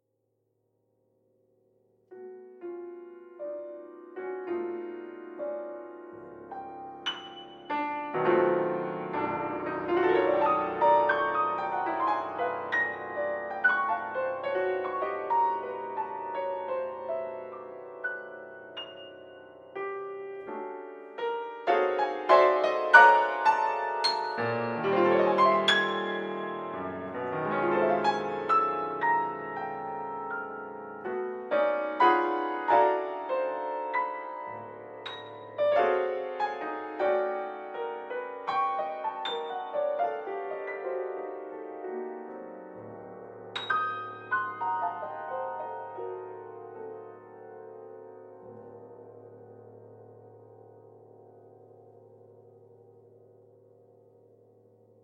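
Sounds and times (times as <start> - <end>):
piano: 1.0 - 55.0.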